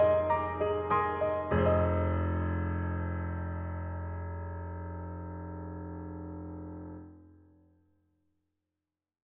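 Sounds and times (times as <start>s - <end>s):
German concert grand piano: 0.0s - 7.4s.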